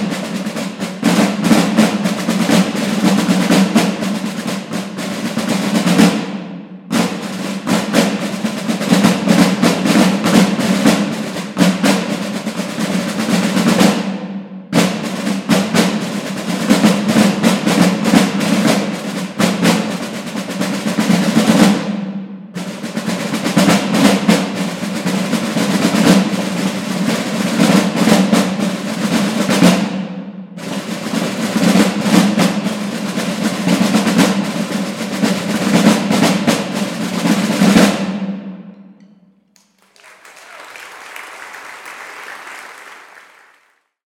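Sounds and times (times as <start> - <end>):
marching snare drumming in brass band music: 0.0 - 43.8.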